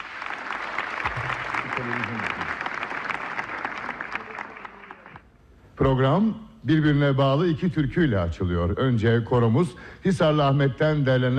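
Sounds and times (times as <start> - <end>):
audience applause: 0.0 - 5.2
speech: 1.8 - 2.4, 5.8 - 11.3.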